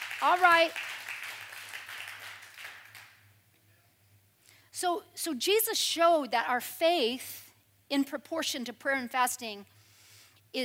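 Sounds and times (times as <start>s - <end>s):
audience clapping: 0.0s - 3.3s
speech: 0.2s - 0.9s, 4.8s - 9.7s.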